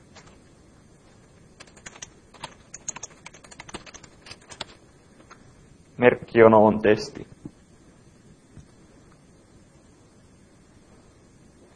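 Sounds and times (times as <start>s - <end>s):
typing code on a computer keyboard: 1.6s - 4.8s
speech: 6.0s - 7.3s.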